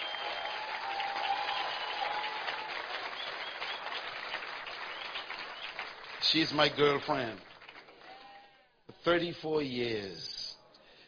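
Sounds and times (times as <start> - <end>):
audience applause for a guest introduced from the stage: 0.0 - 8.2
speech: 6.3 - 7.5, 9.0 - 10.4.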